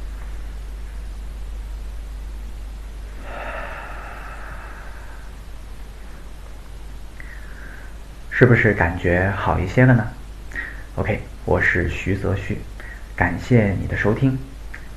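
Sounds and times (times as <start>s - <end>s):
steady hiss: 0.0s - 14.9s
deep inhalation during a relaxation exercise: 3.1s - 6.4s, 7.2s - 8.0s, 10.5s - 11.0s
speech: 8.4s - 10.2s, 11.0s - 14.5s.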